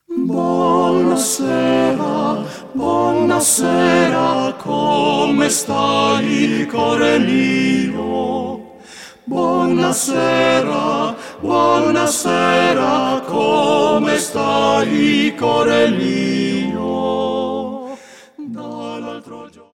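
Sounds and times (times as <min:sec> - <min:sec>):
vocal quartet singing: 0:00.0 - 0:19.7.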